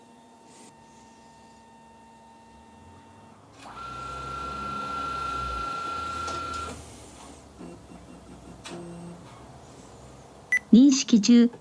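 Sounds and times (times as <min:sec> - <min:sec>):
document scanner motor whirring in continuous read mode: 0:01.8 - 0:06.8.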